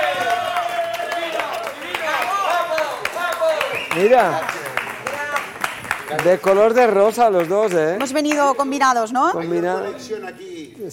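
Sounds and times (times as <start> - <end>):
audience applause: 0.0 - 8.7
speech: 4.0 - 4.6, 6.1 - 10.9.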